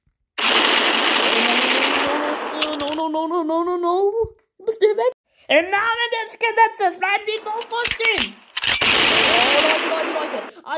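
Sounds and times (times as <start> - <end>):
police gunfire aimed at a group of people: 0.4 - 3.0, 7.7 - 10.5
speech: 3.1 - 8.4, 9.3 - 10.7.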